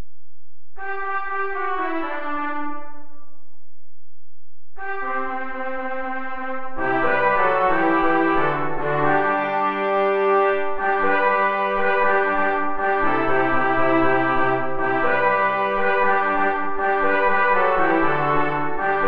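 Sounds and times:
play-along backing track without trombone: 0.8 - 3.6, 4.8 - 19.0.

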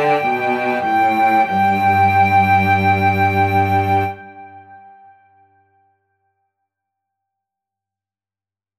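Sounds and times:
music for two con moto: 0.0 - 5.0.

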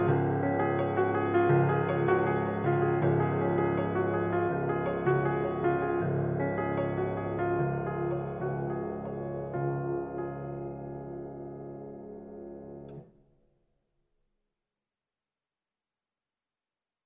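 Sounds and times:
piano playing: 0.0 - 13.0.

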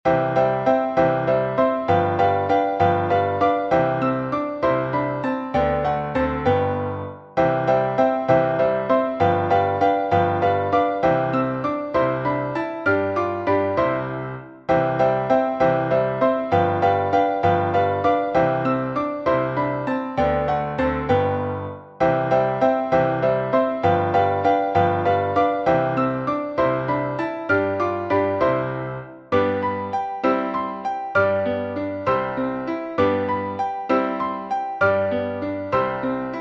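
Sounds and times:
piano duettino: 0.0 - 36.3.

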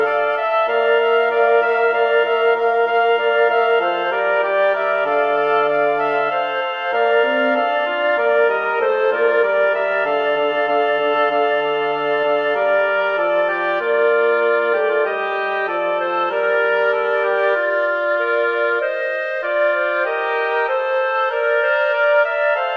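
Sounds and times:
woodwind quartet playing a birdsong piece: 0.0 - 22.7.

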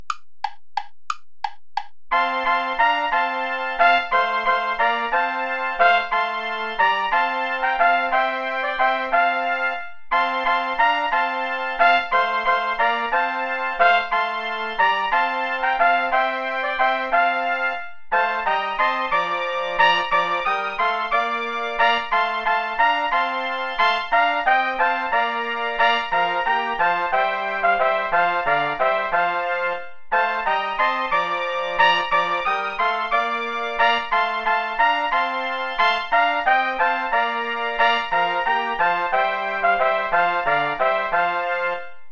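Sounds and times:
play-along backing music without trombone: 0.0 - 41.9.

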